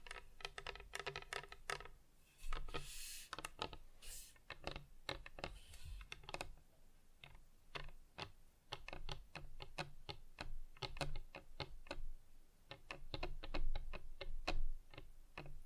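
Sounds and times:
fingers tapping on hard surfaces: 0:00.0 - 0:03.8, 0:04.5 - 0:06.6, 0:07.2 - 0:12.0, 0:12.7 - 0:15.6
bright hissing scrape and rustle: 0:02.3 - 0:03.4, 0:04.0 - 0:04.4.

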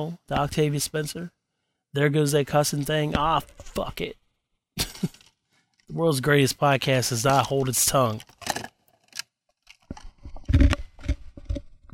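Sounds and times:
speech: 0:00.0 - 0:04.2, 0:04.8 - 0:05.2, 0:05.9 - 0:08.6
crunching ice: 0:07.2 - 0:11.9.

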